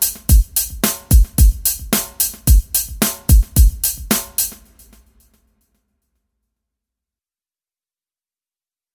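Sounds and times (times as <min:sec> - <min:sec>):
rock hip hop beat: 0:00.0 - 0:05.4.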